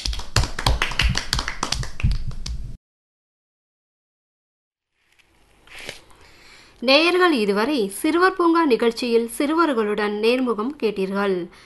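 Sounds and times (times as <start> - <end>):
group of children clapping hands: 0.0 - 2.6
speech: 6.8 - 11.6.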